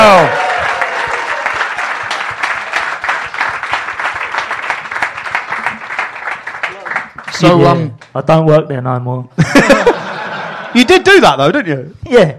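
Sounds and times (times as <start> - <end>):
audience applause at a live comedy show: 0.0 - 8.1
speech: 7.4 - 10.0, 10.7 - 12.3
laughter: 9.4 - 11.2.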